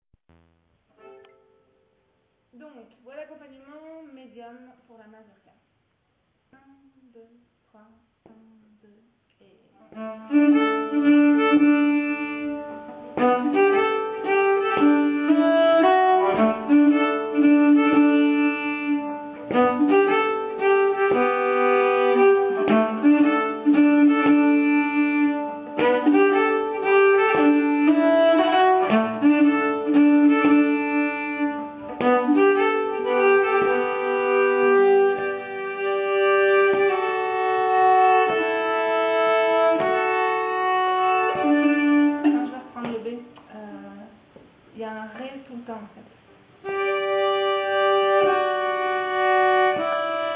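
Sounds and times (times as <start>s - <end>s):
nyckelharpa playing a medium-tempo mazurka: 9.9s - 42.8s, 46.6s - 50.3s.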